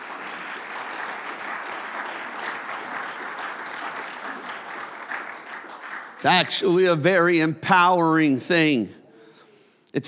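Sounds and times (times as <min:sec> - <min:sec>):
audience clapping hands: 0:00.0 - 0:07.0
speech: 0:06.2 - 0:09.0.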